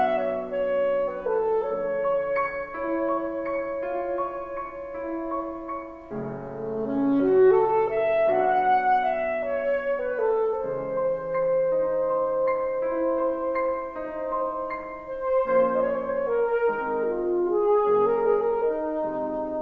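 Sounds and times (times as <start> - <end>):
saxophone: 0.0 - 19.5.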